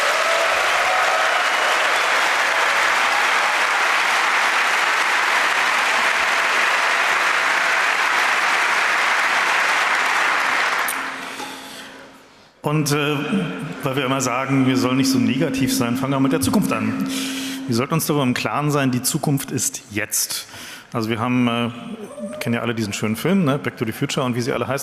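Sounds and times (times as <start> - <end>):
crowd clapping: 0.0 - 12.0
speech: 12.6 - 24.8.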